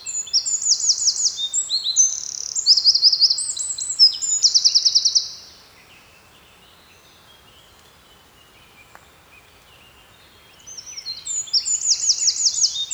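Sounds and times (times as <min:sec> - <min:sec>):
Eurasian wren trilling song: 0:00.1 - 0:05.4, 0:10.7 - 0:12.9.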